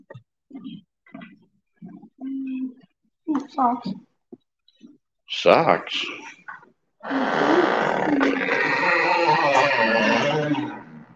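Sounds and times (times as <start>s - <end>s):
speech: 3.5s - 4.0s, 5.3s - 6.4s, 7.0s - 10.6s
creaky door: 7.0s - 10.9s.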